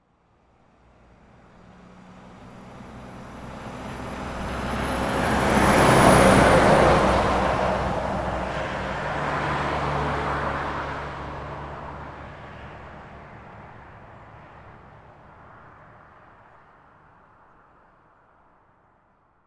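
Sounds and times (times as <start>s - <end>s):
transport truck passing: 0.8s - 15.8s.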